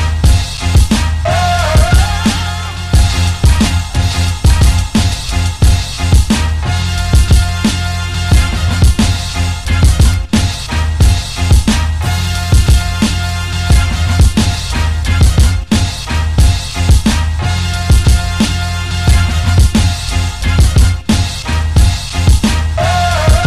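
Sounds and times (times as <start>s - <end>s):
beat: 0.0s - 23.4s.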